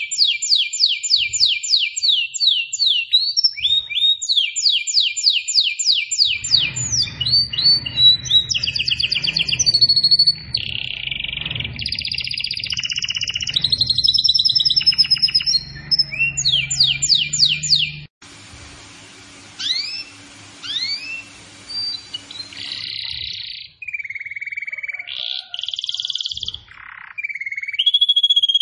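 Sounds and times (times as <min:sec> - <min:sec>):
canary in vigorous continuous song with trills and whistled phrases: 0:00.0 - 0:18.1, 0:19.3 - 0:28.5.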